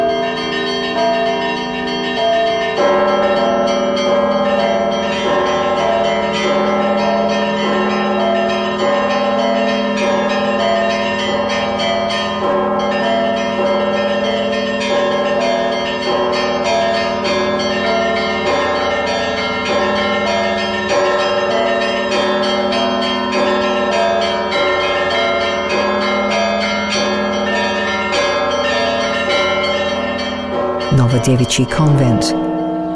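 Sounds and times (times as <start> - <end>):
diverse bells of St. Daniel's Monastery ringing: 0.0 - 32.9
speech: 31.3 - 32.5.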